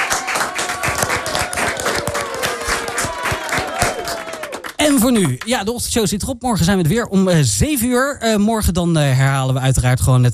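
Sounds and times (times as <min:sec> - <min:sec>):
audience applause: 0:00.0 - 0:05.5
speech: 0:04.9 - 0:10.3.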